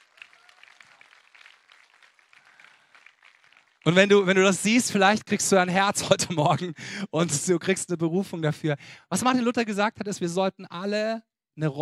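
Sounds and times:
audience applause: 0:00.0 - 0:04.3
speech: 0:03.8 - 0:11.8.

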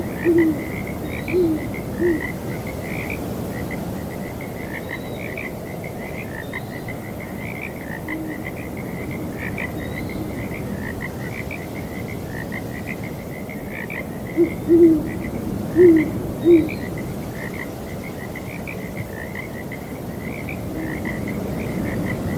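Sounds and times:
owl hooting: 0:00.0 - 0:02.4, 0:14.4 - 0:15.2, 0:15.8 - 0:16.8
frog chorus croaking: 0:00.0 - 0:22.3
wind noise: 0:00.0 - 0:22.3.

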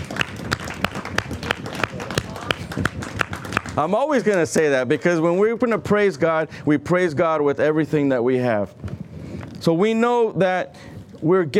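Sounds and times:
audience applause: 0:00.0 - 0:04.4
speech: 0:03.8 - 0:08.8, 0:09.6 - 0:11.5.

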